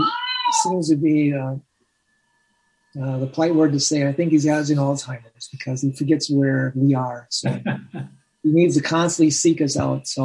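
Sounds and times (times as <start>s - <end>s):
old male cat meowing: 0.0s - 0.7s
speech: 0.0s - 1.7s, 2.9s - 10.2s.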